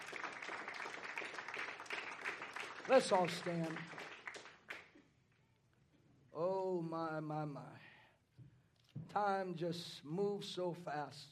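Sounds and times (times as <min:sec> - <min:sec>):
audience clapping: 0:00.0 - 0:05.0
speech: 0:02.9 - 0:04.0, 0:06.4 - 0:07.9, 0:09.2 - 0:11.2.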